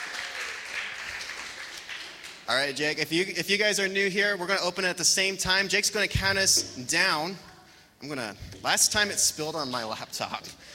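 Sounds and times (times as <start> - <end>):
audience applause: 0.0 - 2.5
speech: 2.5 - 10.7.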